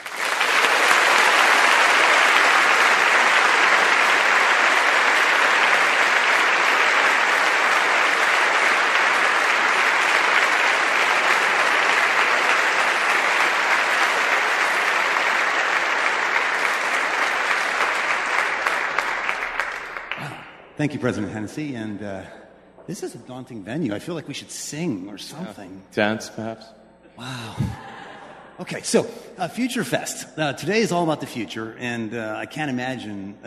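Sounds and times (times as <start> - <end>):
audience applause at Stanford welcoming Elon Musk and Steve Jurvetson: 0.0 - 20.6
speech: 20.8 - 27.8, 28.6 - 33.4
laughter: 27.2 - 29.0.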